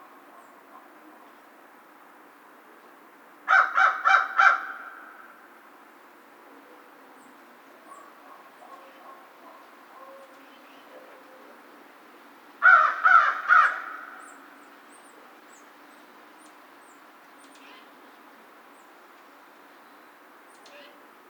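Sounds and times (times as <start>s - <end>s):
American crow cawing: 3.5s - 5.3s, 12.6s - 14.3s.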